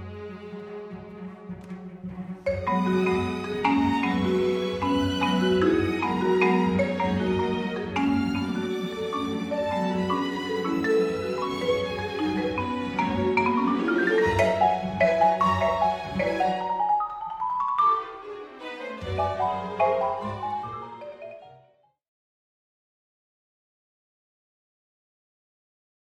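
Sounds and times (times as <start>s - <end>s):
marimba piece: 2.4s - 21.8s.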